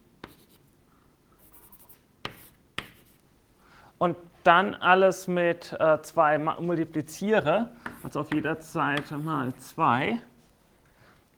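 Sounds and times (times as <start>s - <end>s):
pen writing fractions by hand: 0.2s - 0.7s, 1.4s - 3.2s, 7.8s - 9.6s
pen taps: 2.2s - 3.0s, 7.8s - 9.2s
speech: 4.0s - 10.3s.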